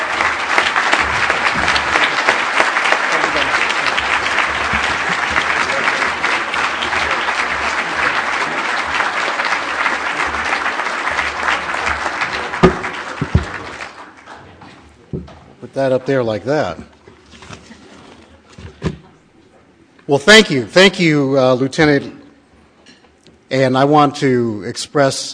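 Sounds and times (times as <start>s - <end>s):
audience applause at a Bay Planning Coalition award presentation: 0.0s - 14.8s
speech: 15.8s - 16.9s, 20.1s - 22.2s, 23.5s - 25.3s.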